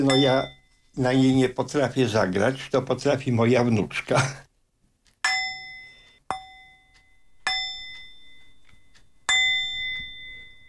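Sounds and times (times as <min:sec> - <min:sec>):
singing bowl struck, bright metallic ring: 0:00.0 - 0:01.0, 0:05.3 - 0:10.6
speech: 0:00.0 - 0:04.4.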